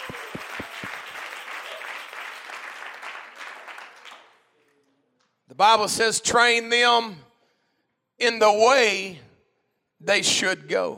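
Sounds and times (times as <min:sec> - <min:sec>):
large group clapping hands: 0:00.0 - 0:05.4
speech: 0:05.6 - 0:07.3, 0:08.2 - 0:09.2, 0:10.0 - 0:10.9.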